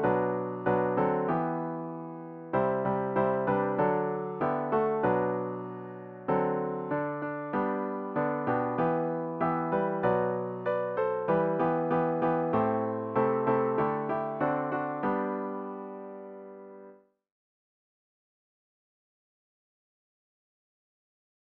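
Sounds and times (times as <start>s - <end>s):
piano: 0.0s - 17.1s.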